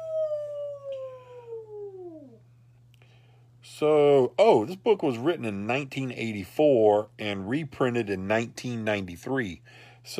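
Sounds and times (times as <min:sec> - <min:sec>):
voice imitating a Sasquatch yell: 0:00.0 - 0:02.4
speech: 0:03.7 - 0:10.1.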